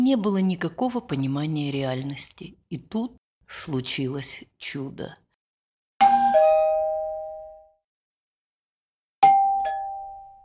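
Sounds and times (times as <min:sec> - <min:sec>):
speech: 0:00.0 - 0:05.2
doorbell chiming: 0:06.0 - 0:07.8, 0:09.2 - 0:10.4.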